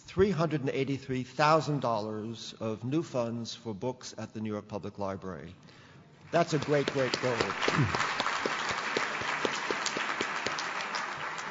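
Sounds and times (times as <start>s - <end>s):
speech: 0.2s - 8.2s
audience applause: 6.4s - 11.4s.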